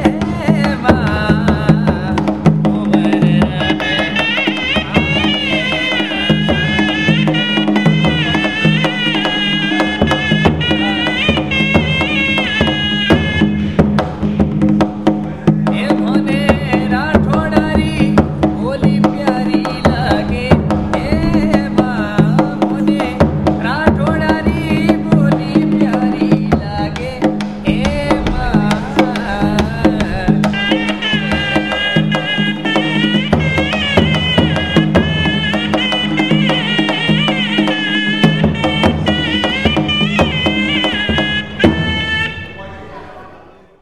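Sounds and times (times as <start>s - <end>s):
drum playing in a fort: 0.0s - 42.5s
shehnai playing in a fort: 3.6s - 13.8s, 30.2s - 43.0s.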